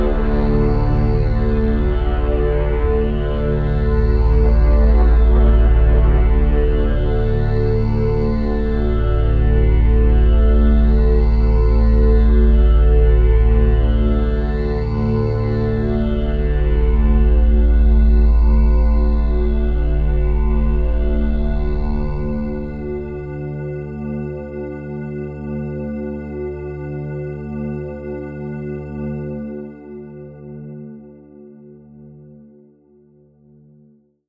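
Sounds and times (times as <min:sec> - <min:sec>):
big simple drone: 0:00.0 - 0:25.0.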